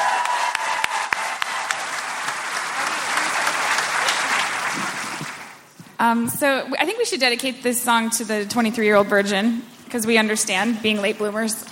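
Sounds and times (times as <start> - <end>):
audience applause after a comedy music duo's performance: 0.0 - 5.7
speech: 6.0 - 11.7.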